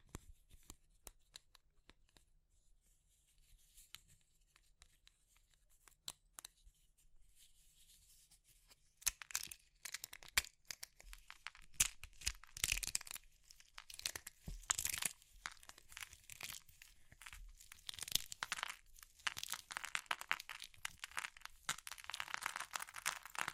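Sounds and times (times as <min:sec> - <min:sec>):
brittle material such as chalk, soap or meringue crushing: 0:09.0 - 0:23.5.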